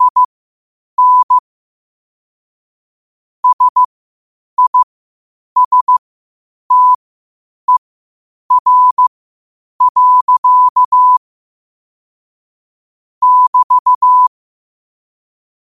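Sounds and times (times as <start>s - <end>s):
morse code at 5 wpm: 0.0s - 0.3s, 1.0s - 1.4s, 3.4s - 3.9s, 4.6s - 4.9s, 5.6s - 6.0s, 6.7s - 7.0s, 8.5s - 9.1s, 9.8s - 11.2s, 13.2s - 14.3s.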